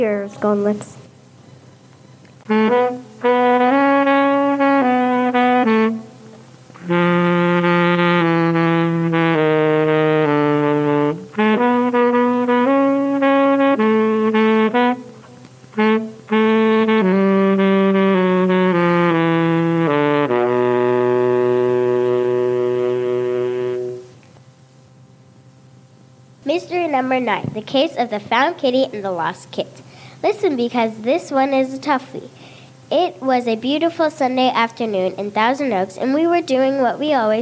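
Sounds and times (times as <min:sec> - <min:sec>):
speech: 0:00.0 - 0:01.0, 0:02.5 - 0:03.3, 0:27.2 - 0:37.4
mystery-solving background music with reedy instrumental melody: 0:02.4 - 0:24.2.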